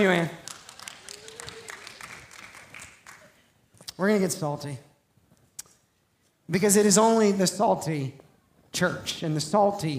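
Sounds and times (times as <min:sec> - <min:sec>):
speech: 0:00.0 - 0:00.4, 0:04.0 - 0:04.9, 0:06.5 - 0:09.9
clapping: 0:00.2 - 0:03.4.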